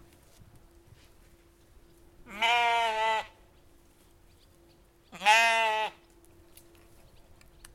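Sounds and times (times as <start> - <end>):
Finnish sheep: 2.3 - 3.4, 5.1 - 6.1.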